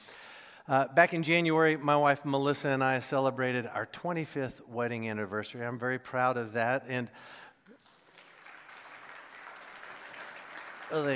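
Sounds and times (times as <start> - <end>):
speech: 0.7 - 7.4, 10.9 - 11.1
church congregation clapping during a Sunday morning sermon: 7.6 - 11.1.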